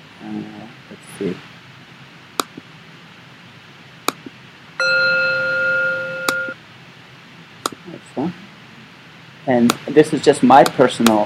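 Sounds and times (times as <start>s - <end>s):
speech: 0.2s - 1.5s, 9.5s - 11.2s
mindfulness bell chime from phone app: 4.8s - 6.6s.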